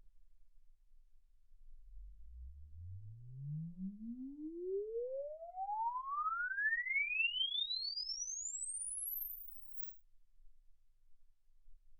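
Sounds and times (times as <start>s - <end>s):
exponential sine sweep from 10 Hz to 24 kHz: 2.0s - 9.9s.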